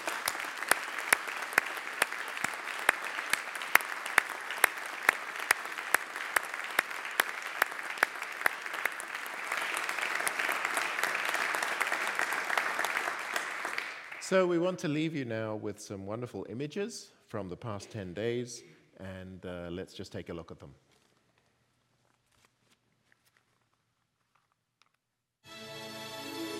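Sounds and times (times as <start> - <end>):
audience applause: 0.0 - 14.3
speech: 14.3 - 20.9.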